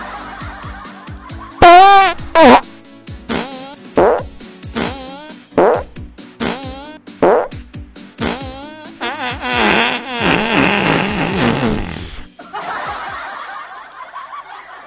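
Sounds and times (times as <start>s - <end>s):
laughter: 0.0s - 1.6s, 12.4s - 14.8s
farts in a comic farting contest: 1.6s - 2.7s, 3.3s - 7.6s, 8.2s - 12.3s.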